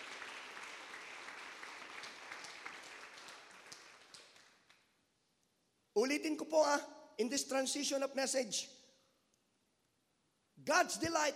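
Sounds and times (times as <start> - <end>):
audience clapping in praise: 0.0 - 4.9
speech: 6.0 - 8.8, 10.7 - 11.3.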